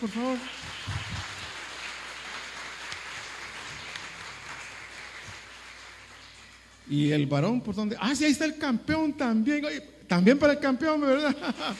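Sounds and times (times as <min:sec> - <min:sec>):
speech: 0:00.0 - 0:01.0, 0:06.9 - 0:11.7
audience applause: 0:00.0 - 0:06.8, 0:11.6 - 0:11.7
laughter: 0:11.1 - 0:11.7.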